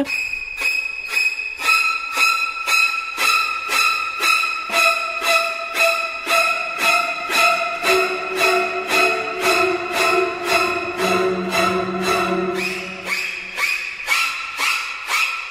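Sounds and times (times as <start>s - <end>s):
horror film shower scene music of piercing string stabs: 0.0s - 15.2s.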